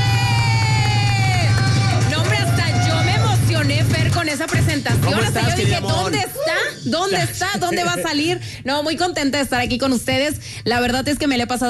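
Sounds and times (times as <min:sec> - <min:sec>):
studio audience applauding and cheering: 0:00.0 - 0:06.4
speech: 0:04.4 - 0:11.6.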